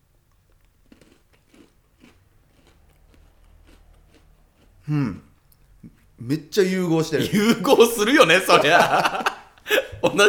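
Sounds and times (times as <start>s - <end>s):
chewing: 0.3s - 6.2s
crisp crunches of someone biting into food to taste it: 0.5s - 5.2s
speech: 4.9s - 5.3s, 6.2s - 10.2s
laughter: 7.2s - 10.2s.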